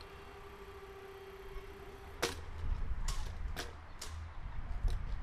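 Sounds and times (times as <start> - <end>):
level crossing acoustic warning signal: 0.0 - 2.6
level crossing barriers rising and lowering: 0.0 - 5.1.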